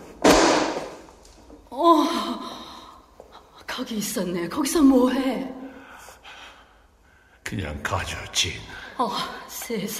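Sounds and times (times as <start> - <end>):
book dropping onto the floor: 0.1 - 1.1
speech: 1.7 - 2.6, 3.8 - 5.6, 7.5 - 9.9.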